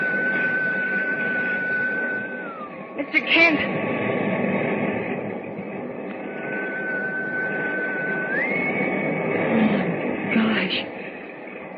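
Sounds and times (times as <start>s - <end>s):
thin, steady whistle tone: 0.0s - 3.0s, 6.2s - 9.3s
constant loud rushing, rumbling noise: 0.0s - 11.7s
speech: 3.0s - 4.0s.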